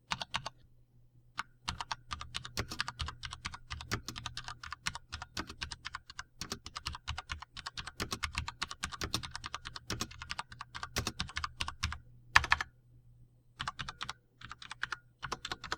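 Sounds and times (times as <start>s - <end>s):
Diatec FILCO Majestouch keyboard typing: 0.1s - 0.6s, 1.4s - 12.7s, 13.6s - 15.7s.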